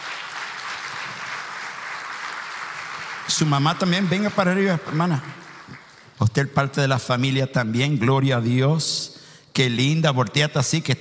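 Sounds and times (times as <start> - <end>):
audience applause: 0.0 - 6.3
speech: 3.3 - 5.4, 6.2 - 10.9.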